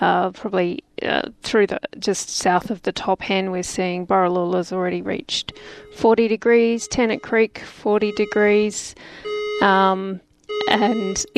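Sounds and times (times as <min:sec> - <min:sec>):
speech: 0:00.0 - 0:11.3
fire alarm test ringing: 0:05.5 - 0:09.9, 0:10.5 - 0:11.3.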